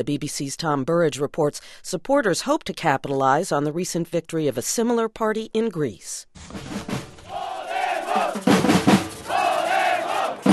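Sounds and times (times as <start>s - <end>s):
speech: 0.0s - 6.9s
tens of thousands of demonstrators rallying: 7.2s - 10.5s.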